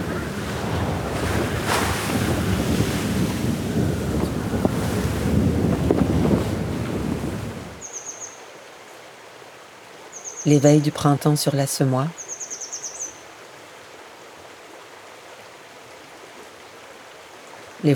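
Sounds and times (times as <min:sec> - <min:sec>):
North Sea waves roaring: 0:00.0 - 0:07.8
North Sea wind gusting: 0:00.0 - 0:07.9
speech: 0:10.5 - 0:12.2.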